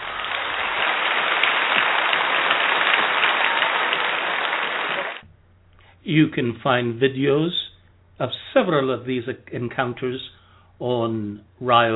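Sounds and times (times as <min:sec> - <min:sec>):
audience applause: 0:00.0 - 0:05.2
speech: 0:06.1 - 0:07.6, 0:08.2 - 0:11.9.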